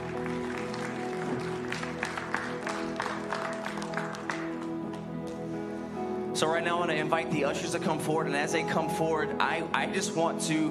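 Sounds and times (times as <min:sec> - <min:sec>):
audience hand clapping: 0:00.0 - 0:05.5
speech: 0:06.4 - 0:10.6.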